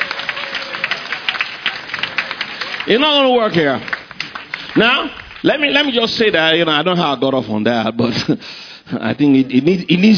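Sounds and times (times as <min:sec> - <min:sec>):
audience clapping: 0:00.0 - 0:06.4
speech: 0:02.8 - 0:04.0, 0:04.8 - 0:10.1.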